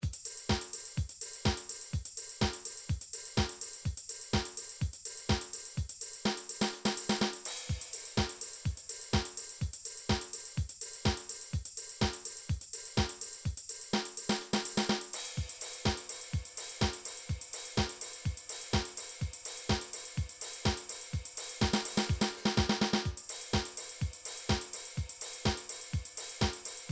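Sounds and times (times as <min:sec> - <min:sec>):
house drum beat from MIDI files: 0:00.0 - 0:26.9.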